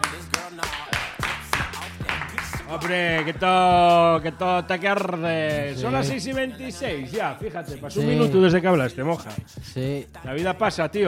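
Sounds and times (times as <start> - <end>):
slow hesitant hand claps: 0.0 - 3.4
speech: 2.7 - 11.0.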